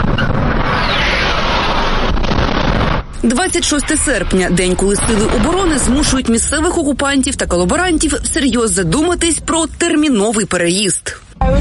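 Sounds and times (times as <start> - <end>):
explosions: 0.0 - 8.2
speech: 3.2 - 11.6.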